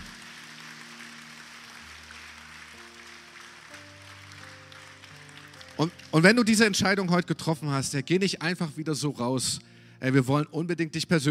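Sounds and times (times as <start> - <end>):
audience applause: 0.0 - 7.0
speech: 5.8 - 11.3.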